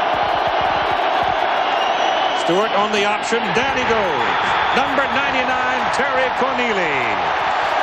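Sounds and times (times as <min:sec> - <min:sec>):
stadium crowd roaring: 0:00.0 - 0:07.8
speech: 0:02.4 - 0:07.5.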